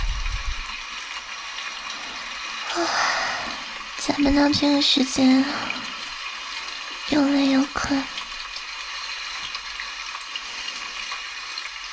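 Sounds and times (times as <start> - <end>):
rain pattering: 0.0 - 11.9
speech: 2.8 - 3.1, 4.1 - 5.8, 7.1 - 8.1.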